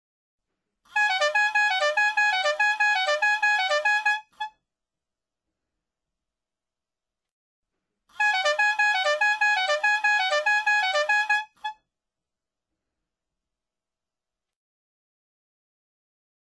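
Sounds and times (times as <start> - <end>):
car horn honking: 1.0 - 4.5, 8.2 - 11.7.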